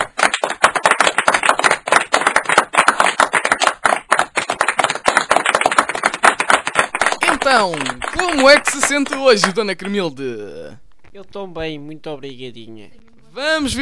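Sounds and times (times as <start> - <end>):
audience applause: 0.0 - 10.1
speech: 7.5 - 13.7.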